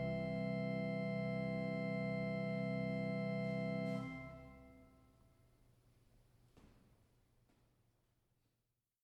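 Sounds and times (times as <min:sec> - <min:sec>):
trio piece in C major: 0:00.0 - 0:05.1.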